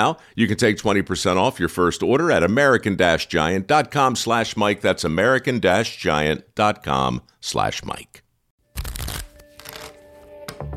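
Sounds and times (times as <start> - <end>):
speech: 0.0 - 8.2
deck of playing cards shuffling: 8.8 - 10.1.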